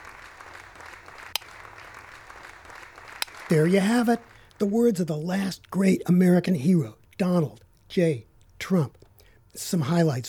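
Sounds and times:
crowd applause sound effect track: 0:00.0 - 0:04.8
speech: 0:03.5 - 0:10.2.

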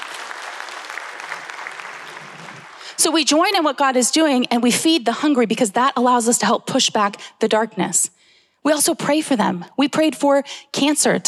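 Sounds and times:
audience applause: 0:00.0 - 0:03.0
speech: 0:03.0 - 0:11.2.

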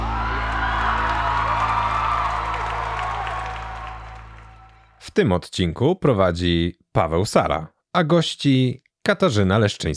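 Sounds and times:
audience applause: 0:00.0 - 0:05.0
speech: 0:05.2 - 0:09.9.

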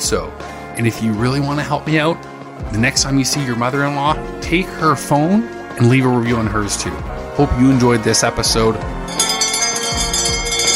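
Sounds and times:
speech: 0:00.1 - 0:09.3
quitting time bell ringing: 0:09.1 - 0:10.7.

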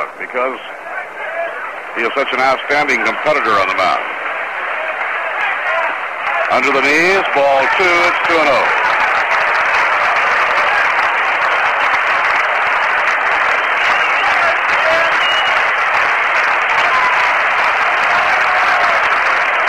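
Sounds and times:
speech: 0:00.4 - 0:00.8, 0:02.0 - 0:04.2, 0:06.5 - 0:08.8
stadium crowd cheering and applauding at Shea: 0:00.8 - 0:19.6.

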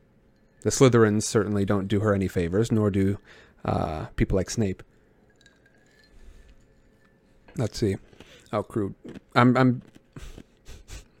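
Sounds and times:
speech: 0:00.6 - 0:04.9, 0:07.6 - 0:10.5
crunching on ice: 0:07.7 - 0:10.6.

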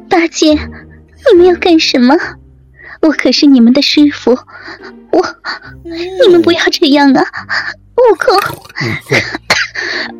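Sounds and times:
speech: 0:00.2 - 0:02.4, 0:03.0 - 0:10.1
hoarse throaty coughs: 0:08.2 - 0:09.8.

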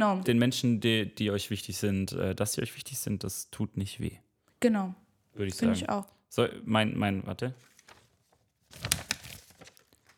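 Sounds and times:
speech: 0:00.0 - 0:07.7
plastic fortune cookie wrapper crinkling and being torn open: 0:08.7 - 0:10.1.

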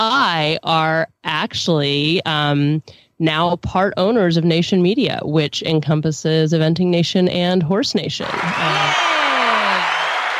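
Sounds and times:
speech: 0:00.0 - 0:09.1
crowd applause sound effect: 0:08.2 - 0:10.3.

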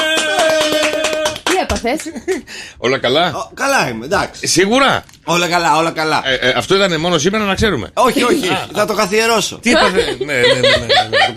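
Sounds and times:
hosts clapping on a Greek morning show: 0:00.0 - 0:02.2
speech: 0:01.8 - 0:11.3
laughter: 0:09.7 - 0:11.3.

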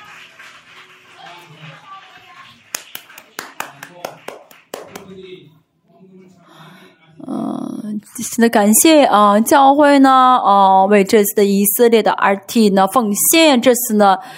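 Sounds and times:
audience applauding: 0:00.0 - 0:05.3
murmur of voices and talk: 0:00.0 - 0:07.9
speech: 0:08.0 - 0:14.3.

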